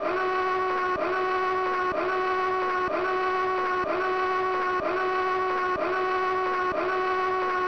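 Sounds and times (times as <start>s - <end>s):
alarm: 0.0s - 7.6s.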